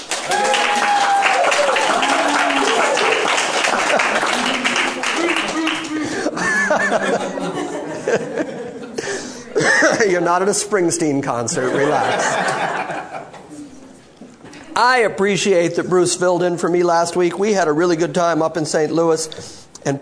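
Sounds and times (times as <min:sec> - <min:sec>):
audience applause: 0:00.0 - 0:07.1
crowd laughing: 0:00.4 - 0:13.8
speech: 0:10.1 - 0:12.7, 0:14.8 - 0:20.0.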